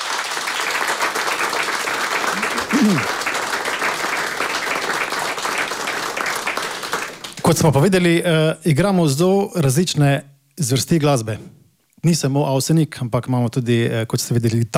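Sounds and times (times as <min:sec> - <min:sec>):
crowd applauding: 0:00.0 - 0:07.6
vocal whoop: 0:02.3 - 0:03.2
speech: 0:02.8 - 0:03.2, 0:07.5 - 0:14.7.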